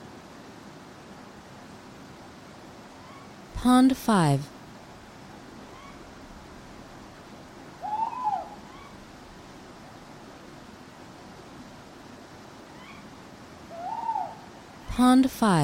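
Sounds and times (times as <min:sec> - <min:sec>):
background hiss: 0:00.0 - 0:15.6
speech: 0:03.6 - 0:04.5, 0:15.0 - 0:15.6
owl hoots: 0:05.7 - 0:06.0, 0:07.8 - 0:09.0, 0:12.7 - 0:13.1, 0:13.7 - 0:14.6.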